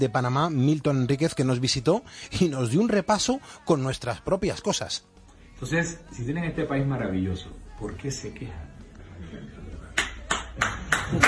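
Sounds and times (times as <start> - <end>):
speech: 0.0 - 9.5
crowd applause: 10.3 - 11.2.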